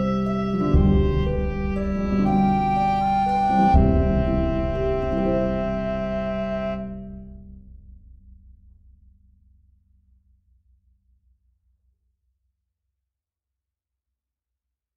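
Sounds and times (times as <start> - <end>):
oboe melody: 0.0 - 7.4.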